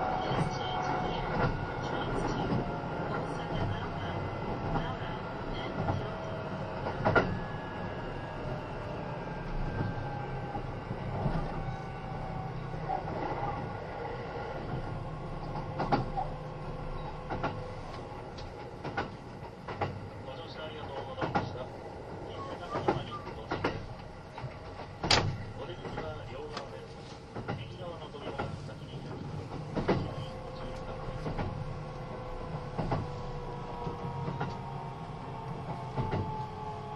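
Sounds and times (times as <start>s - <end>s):
Kintetsu 80000 series Hinotori limited express train running rumble: 0.0s - 36.9s
sharp clicks and knocks from the rails: 0.2s - 7.6s, 14.6s - 36.7s.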